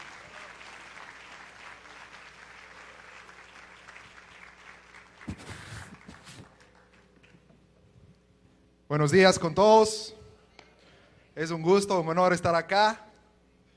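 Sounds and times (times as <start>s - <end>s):
audience applause: 0.0s - 7.3s
speech: 8.9s - 10.2s, 11.4s - 13.0s.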